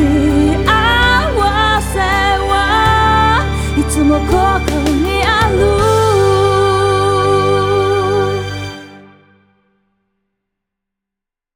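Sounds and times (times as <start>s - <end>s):
woman singing in a music sample: 0.0s - 8.9s.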